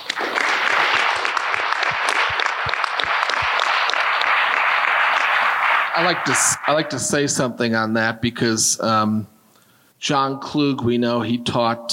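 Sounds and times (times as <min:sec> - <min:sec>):
round of applause: 0:00.0 - 0:06.9
speech: 0:06.0 - 0:09.3, 0:10.0 - 0:11.9.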